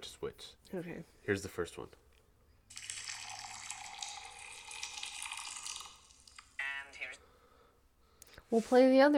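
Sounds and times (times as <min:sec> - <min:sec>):
speech: 0:00.0 - 0:02.0, 0:08.5 - 0:09.1
water being poured: 0:02.7 - 0:06.6.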